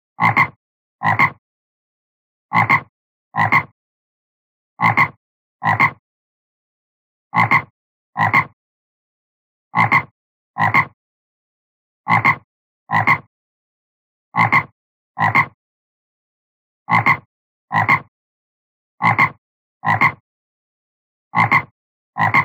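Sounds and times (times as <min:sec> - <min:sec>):
frog croaking: 0:00.2 - 0:01.4, 0:02.5 - 0:03.8, 0:04.8 - 0:06.0, 0:07.4 - 0:08.6, 0:09.8 - 0:11.0, 0:12.1 - 0:13.3, 0:14.4 - 0:15.6, 0:16.9 - 0:18.1, 0:19.0 - 0:20.2, 0:21.4 - 0:22.4
speech: 0:17.7 - 0:18.0.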